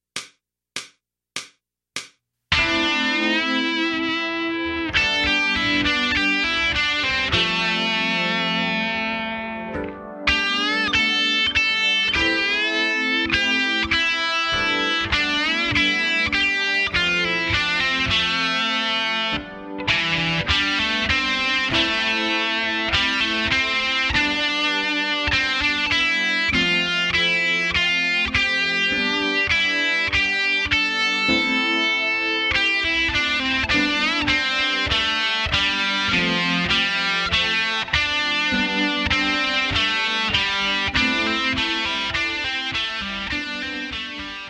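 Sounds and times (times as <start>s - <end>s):
guitar playing: 2.5s - 44.4s.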